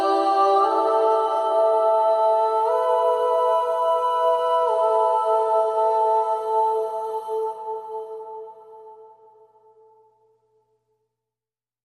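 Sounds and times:
person singing: 0.0s - 9.4s.

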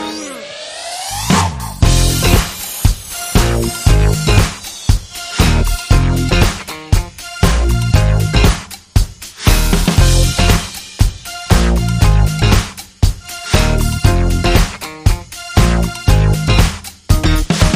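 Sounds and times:
bass: 1.2s - 2.6s, 3.3s - 4.6s, 5.3s - 8.7s, 9.4s - 10.8s, 11.5s - 12.8s, 13.4s - 17.7s.

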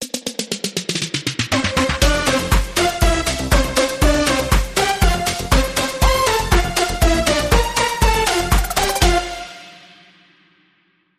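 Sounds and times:
techno birthday song: 1.5s - 9.9s.

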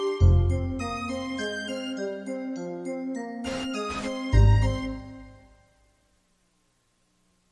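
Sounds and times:
celesta bass sound effect: 0.2s - 2.0s, 3.5s - 5.6s.

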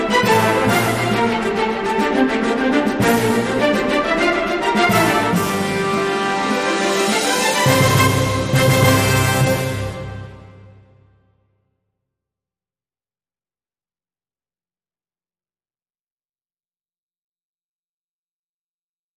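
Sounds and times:
world fanfare: 0.1s - 11.2s.

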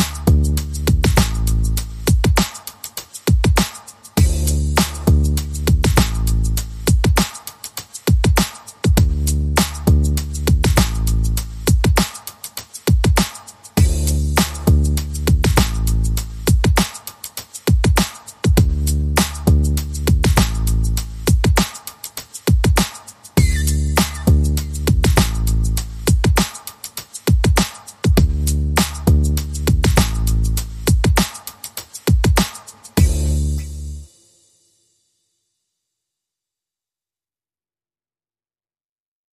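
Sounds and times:
bass: 0.0s - 2.4s, 4.2s - 7.2s, 8.9s - 12.0s, 13.7s - 16.8s, 18.5s - 21.6s, 23.4s - 26.4s, 28.1s - 31.2s, 32.9s - 34.1s
drums: 0.0s - 34.4s.

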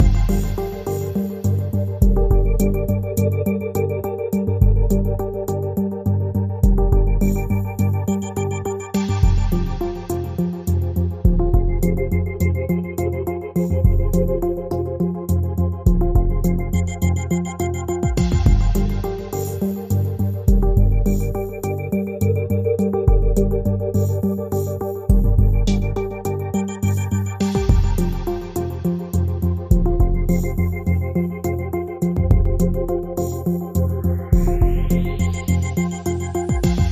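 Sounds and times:
lounge music: 0.0s - 36.9s.

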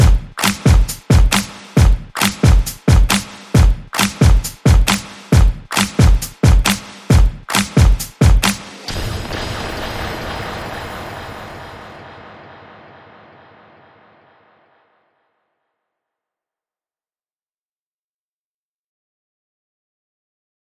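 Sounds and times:
electronic beat: 0.0s - 12.8s.

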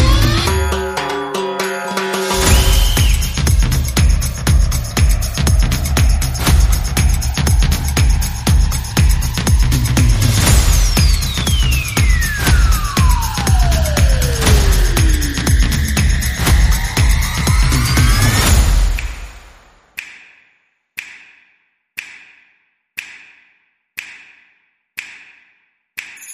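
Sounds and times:
swing music with percussion and effects: 0.0s - 19.5s.

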